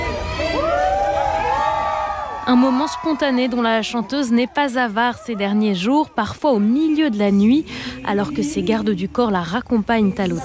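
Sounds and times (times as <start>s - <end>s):
crowd cheering: 0.0s - 6.7s
speech: 2.5s - 10.4s.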